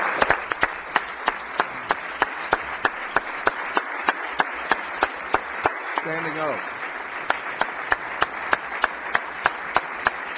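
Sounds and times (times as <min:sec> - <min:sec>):
applause in the Missouri Senate welcoming a special guest: 0:00.0 - 0:10.3
speech: 0:06.0 - 0:06.7.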